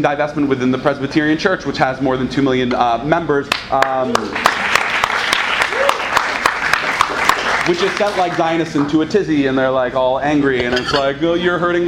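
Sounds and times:
speech: 0.0s - 4.6s, 7.7s - 11.8s
audience clapping: 3.5s - 9.0s
faint voices and whoops: 5.6s - 6.2s.

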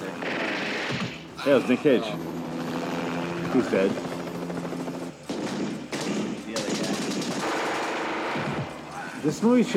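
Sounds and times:
machine gun fire in a film: 0.2s - 1.3s, 3.8s - 8.9s
speech: 1.4s - 2.3s, 3.5s - 4.1s, 9.3s - 9.7s.

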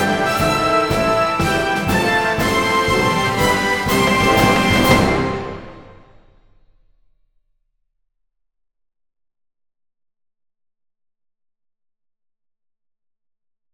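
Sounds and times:
instrumental music: 0.0s - 6.3s.

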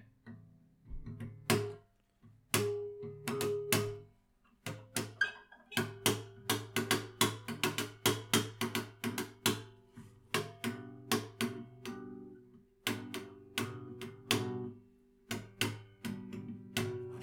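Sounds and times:
slapping an acoustic guitar's strings: 0.9s - 1.8s, 2.5s - 17.2s.

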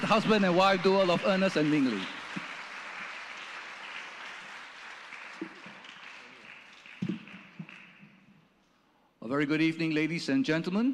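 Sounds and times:
audience applause: 0.0s - 8.1s
speech: 0.1s - 2.2s, 9.3s - 10.9s.

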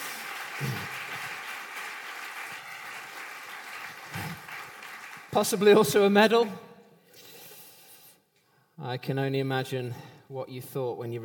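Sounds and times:
audience applause: 0.0s - 6.2s
speech: 5.4s - 6.6s, 8.9s - 11.2s.

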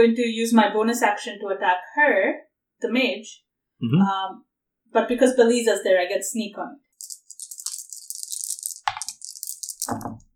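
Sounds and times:
speech: 0.0s - 7.1s
dice rolling on a table: 7.0s - 10.3s.

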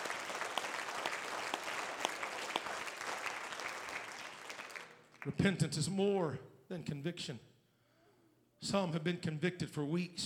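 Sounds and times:
audience clapping hands: 0.0s - 5.4s
speech: 5.2s - 7.5s, 8.6s - 10.2s.

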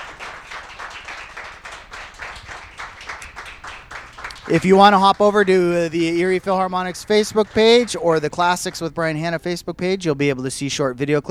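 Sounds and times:
round of applause: 0.0s - 8.8s
speech: 4.5s - 11.2s.

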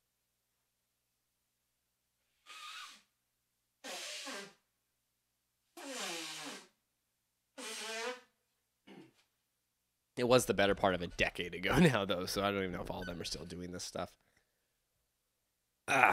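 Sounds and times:
nose blowing: 2.4s - 3.1s, 3.8s - 4.6s, 5.8s - 6.8s, 7.6s - 8.4s
speech: 10.2s - 14.3s, 15.9s - 16.1s.

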